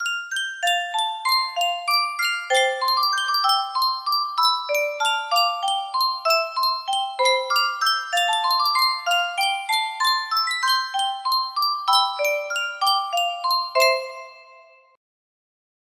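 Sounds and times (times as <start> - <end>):
Yunsheng music box melody: 0.0 - 15.0.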